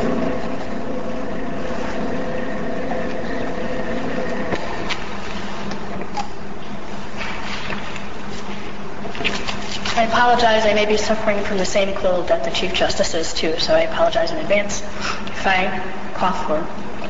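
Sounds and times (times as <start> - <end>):
motorized podium being lowered: 0.0 - 8.1
speech: 10.2 - 16.9.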